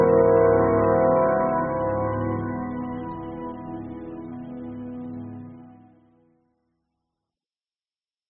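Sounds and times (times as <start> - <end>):
dark mood suspense music: 0.0 - 4.5.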